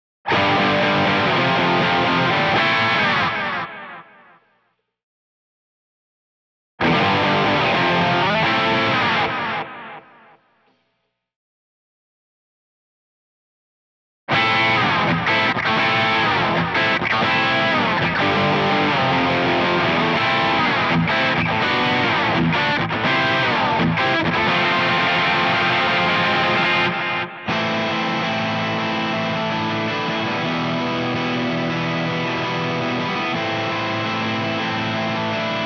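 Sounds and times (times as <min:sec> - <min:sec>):
bass guitar: 0:00.3 - 0:03.6, 0:06.8 - 0:09.7, 0:14.3 - 0:35.6.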